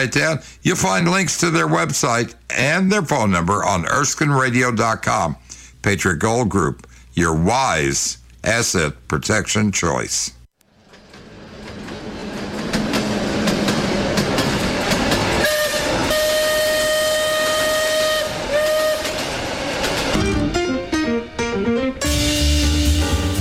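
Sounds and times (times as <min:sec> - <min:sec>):
speech: 0:00.0 - 0:10.4
steam train chugging: 0:10.8 - 0:20.7
steam train whistle blowing: 0:15.4 - 0:19.4, 0:22.0 - 0:23.3.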